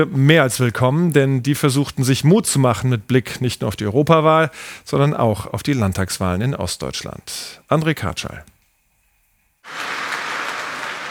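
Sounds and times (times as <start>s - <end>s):
speech: 0.0s - 8.5s
party conference applause: 9.6s - 11.1s.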